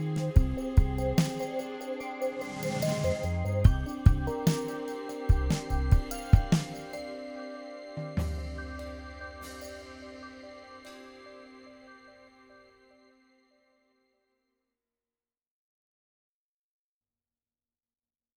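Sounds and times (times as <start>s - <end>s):
drum kit: 0.0s - 7.1s, 8.0s - 10.4s.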